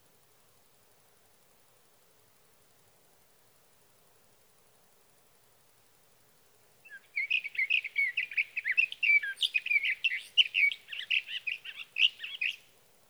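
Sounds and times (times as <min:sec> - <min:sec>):
Sage thrasher song: 0:06.9 - 0:12.7.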